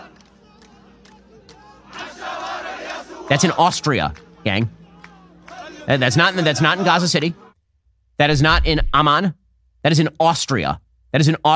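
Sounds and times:
people yelling: 0.0s - 7.5s
large protest crowd cheering: 0.0s - 7.6s
speech: 3.3s - 4.8s, 5.8s - 7.4s, 8.2s - 11.5s.

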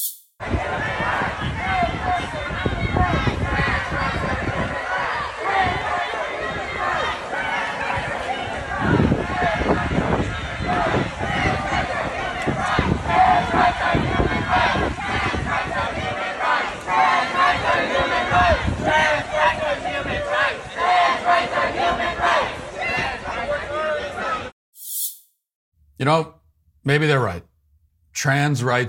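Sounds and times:
protesters chanting around a car: 0.4s - 24.5s
speech: 26.0s - 27.5s, 28.2s - 28.8s.

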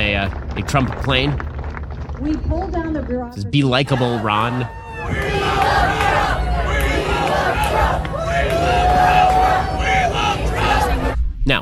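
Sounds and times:
speech: 0.2s - 1.5s, 2.2s - 6.4s
rowdy political rally crowd shouting and jeering: 3.7s - 11.2s.

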